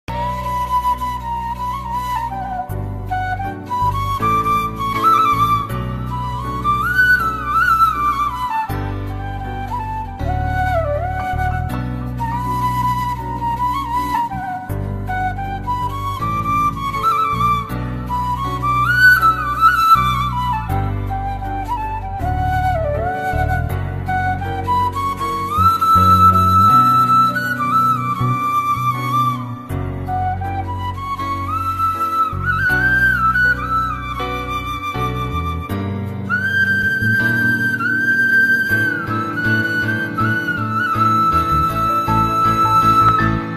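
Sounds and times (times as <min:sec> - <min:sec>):
flute instrumental background music: 0:00.0 - 0:43.5.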